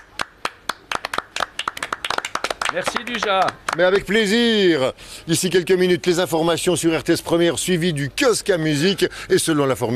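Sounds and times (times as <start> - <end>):
small group of men clapping: 0.0 - 4.2
speech: 2.7 - 9.9.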